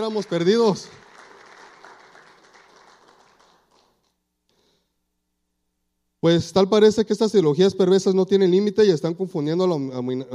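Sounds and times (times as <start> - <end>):
speech: 0.0 - 1.0, 6.2 - 10.3
audience applause: 0.0 - 4.0.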